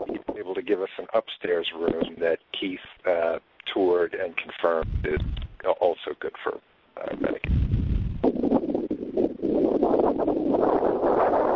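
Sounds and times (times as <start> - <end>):
speech: 0.6 - 7.6
wind blowing into a microphone outdoors: 4.8 - 5.7, 7.0 - 11.5.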